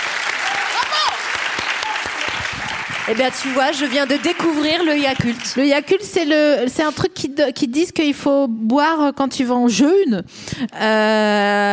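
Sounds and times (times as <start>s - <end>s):
hand clapping applause: 0.0s - 6.1s
speech: 3.1s - 11.7s.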